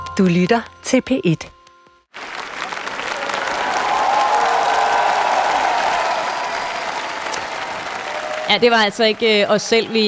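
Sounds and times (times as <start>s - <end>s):
speech: 0.2s - 1.5s, 8.5s - 10.0s
concert hall audience applauding: 2.1s - 10.0s
faint cheers: 3.0s - 8.9s.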